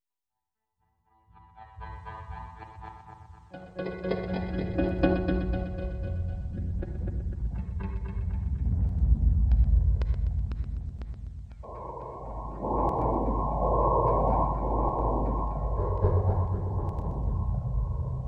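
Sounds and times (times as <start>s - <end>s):
B flat Locrian music deconstruction: 1.4s - 18.1s.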